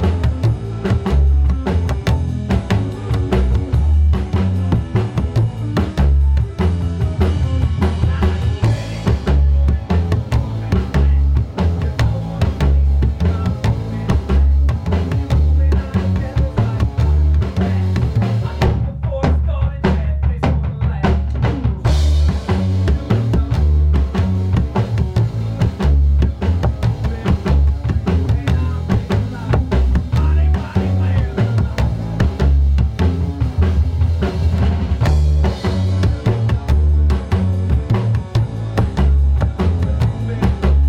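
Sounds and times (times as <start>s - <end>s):
upright bass bouncing: 0.0s - 40.8s.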